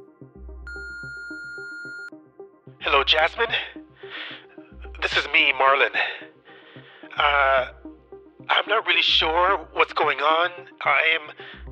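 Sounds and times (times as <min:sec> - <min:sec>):
answering machine high-pitched electronic beep: 0:00.7 - 0:02.1
speech: 0:02.8 - 0:04.3, 0:05.0 - 0:06.3, 0:07.2 - 0:07.8, 0:08.5 - 0:11.6.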